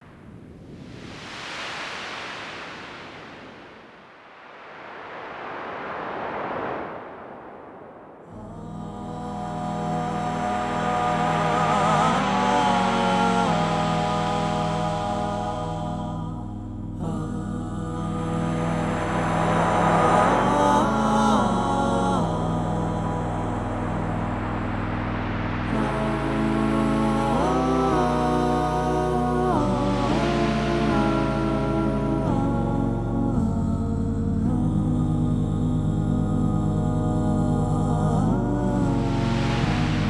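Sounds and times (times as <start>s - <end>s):
many sine wave tones: 5.2s - 40.0s.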